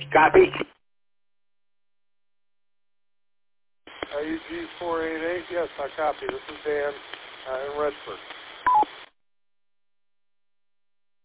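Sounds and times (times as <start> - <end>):
speech: 0.1 - 0.8, 4.2 - 8.9
radio roger beep tone: 8.7 - 9.0.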